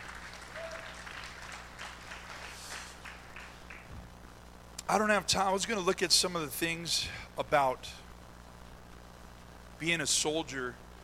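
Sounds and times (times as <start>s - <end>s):
audience hand clapping: 0.0s - 4.0s
speech: 4.9s - 8.0s, 9.8s - 10.8s.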